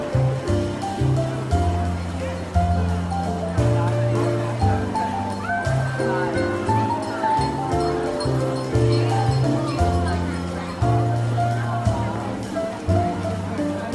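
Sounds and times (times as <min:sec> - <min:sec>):
jazz piano: 0:00.0 - 0:13.9
market murmur: 0:00.0 - 0:13.9
walking bass line: 0:00.0 - 0:13.9.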